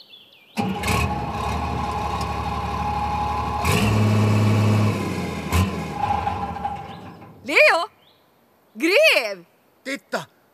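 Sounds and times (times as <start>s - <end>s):
short rising and falling squeals: 0.6s - 7.7s
clanking: 0.6s - 7.8s
excavator engine rumbling while digging: 0.6s - 7.9s.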